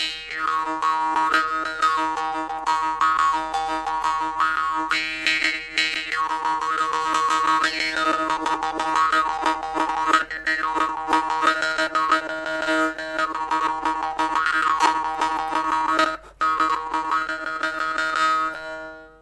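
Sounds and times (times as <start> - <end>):
small Yakut khomus: 0.0 - 19.2.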